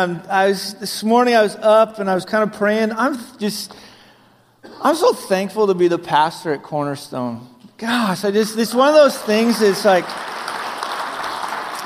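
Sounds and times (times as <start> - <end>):
speech: 0.0 - 3.9, 4.6 - 10.4
church congregation clapping for its pastor: 9.0 - 11.8.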